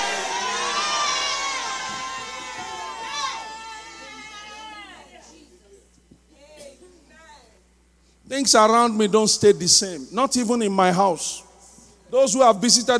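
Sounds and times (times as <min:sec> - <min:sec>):
audience shouting amen: 0:00.0 - 0:05.2
speech: 0:08.3 - 0:11.4, 0:12.1 - 0:12.9.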